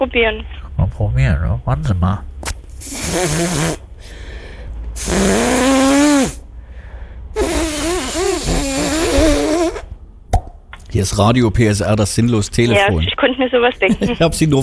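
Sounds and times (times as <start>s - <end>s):
speech: 0.0s - 4.2s, 5.0s - 6.1s, 11.0s - 14.6s
nose blowing: 2.8s - 4.2s, 5.0s - 6.5s, 7.4s - 9.9s.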